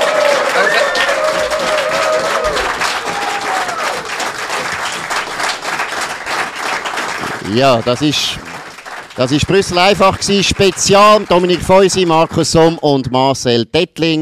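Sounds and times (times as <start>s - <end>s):
audience whistles and cheers: 0.0s - 4.2s
audience applause: 0.0s - 12.8s
speech: 7.5s - 8.4s, 9.2s - 14.2s.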